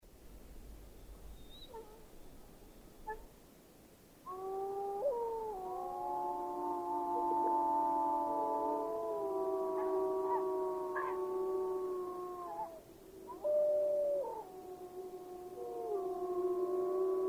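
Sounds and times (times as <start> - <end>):
wolves howling in chorus: 4.3 - 17.2.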